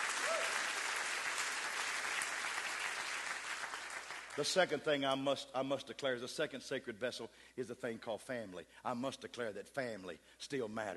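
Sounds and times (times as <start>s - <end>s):
audience clapping hands: 0.0s - 4.8s
speech: 4.4s - 10.9s.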